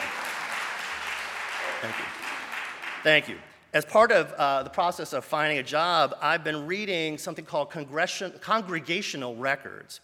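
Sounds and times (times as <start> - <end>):
crowd applause: 0.0 - 3.3
speech: 1.8 - 2.2, 3.0 - 10.0.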